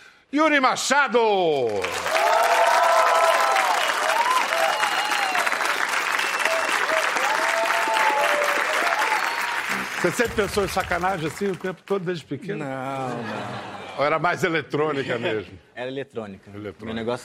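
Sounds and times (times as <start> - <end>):
speech: 0.3 - 2.1, 10.0 - 17.2
audience applause: 1.7 - 12.0
people whooping and cheering: 1.9 - 10.1
laughter: 12.5 - 14.3.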